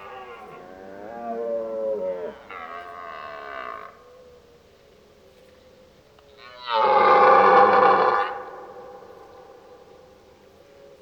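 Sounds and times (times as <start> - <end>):
red deer roar: 0.0 - 4.0, 6.4 - 9.7.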